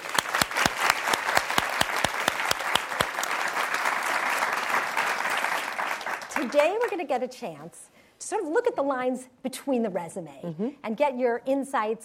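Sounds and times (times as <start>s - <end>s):
audience applause welcoming Meg Whitman: 0.0s - 7.1s
speech: 6.4s - 12.0s.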